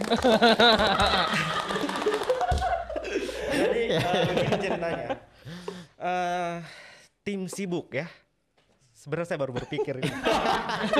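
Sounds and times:
audience clapping: 0.0s - 3.0s
people cheering: 0.0s - 4.7s
people laughing: 0.0s - 5.6s, 9.6s - 10.9s
speech: 0.1s - 1.9s, 3.9s - 8.2s, 9.0s - 10.9s.

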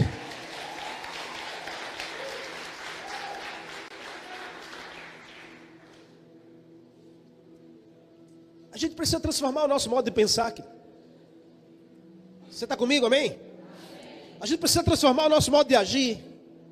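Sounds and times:
audience clapping: 0.0s - 6.1s
speech: 8.8s - 10.8s, 12.6s - 13.4s, 14.4s - 16.3s.

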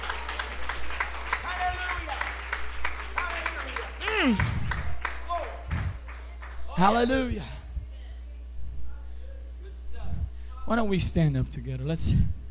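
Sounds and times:
audience clapping hands: 0.0s - 7.1s
speech: 4.2s - 4.6s, 6.8s - 7.6s, 10.7s - 12.4s.

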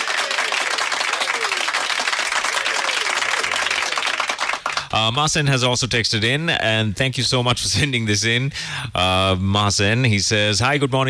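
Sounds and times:
applause sound effect: 0.0s - 5.0s
speech: 5.0s - 11.0s.

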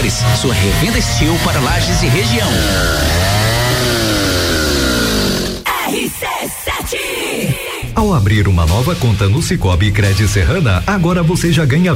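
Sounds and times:
speech: 0.1s - 3.3s, 6.1s - 11.9s
chainsaw running: 0.3s - 5.7s.

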